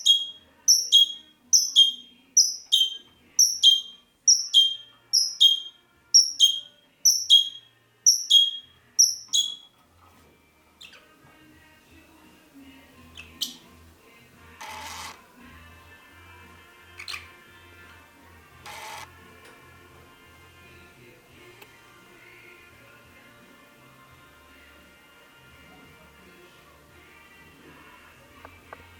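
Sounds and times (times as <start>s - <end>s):
singing parrots Psephotus haematonotus: 0.0s - 9.7s, 13.1s - 13.6s, 17.0s - 17.3s.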